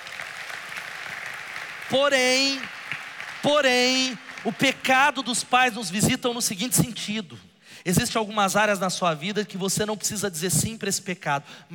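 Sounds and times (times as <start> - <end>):
audience applauding: 0.0 - 5.8
speech: 1.9 - 2.8, 3.4 - 11.7.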